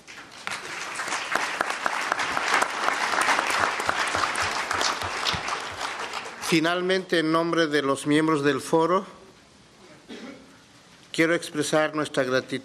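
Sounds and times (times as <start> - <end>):
audience applause: 0.0 - 6.6
speech: 6.5 - 9.2, 11.2 - 12.6.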